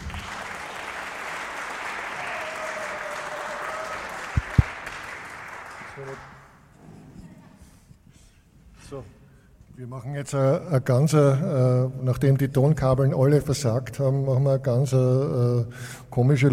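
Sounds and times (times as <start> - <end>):
audience applause welcoming a speaker: 0.0 - 6.5
speech: 6.0 - 6.4, 8.9 - 9.2, 9.8 - 16.5.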